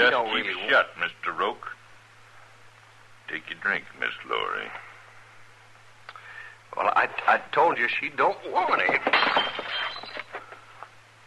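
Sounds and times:
speech: 0.0s - 1.8s, 3.3s - 4.8s, 6.7s - 9.6s
drinking glass knocked out of hand smashing: 8.8s - 10.4s.

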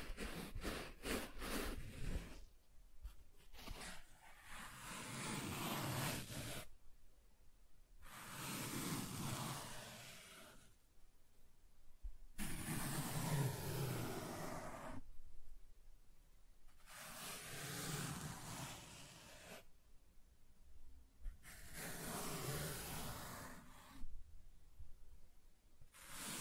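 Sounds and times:
soft tracing strokes drawn across a surface: 0.0s - 2.4s, 3.6s - 6.7s, 8.0s - 10.8s, 12.4s - 15.0s, 16.8s - 19.7s, 21.4s - 24.0s, 26.0s - 26.3s.

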